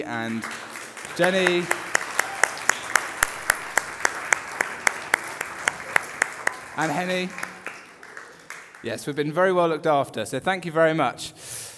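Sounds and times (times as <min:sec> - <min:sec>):
speech: 0:00.0 - 0:01.8, 0:06.8 - 0:07.5, 0:08.8 - 0:11.4
round of applause: 0:00.0 - 0:09.2.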